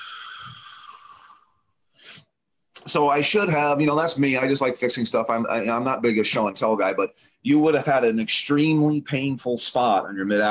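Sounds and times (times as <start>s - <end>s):
person breathing in and out deeply during a doctor's examination: 0.0s - 2.4s
speech: 2.9s - 10.4s.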